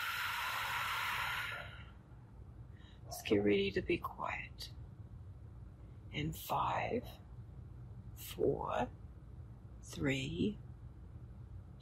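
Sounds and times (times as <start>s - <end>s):
deep breath blown out: 0.0s - 1.9s
speech: 3.3s - 4.8s, 6.1s - 7.2s, 8.3s - 9.0s, 9.9s - 10.7s.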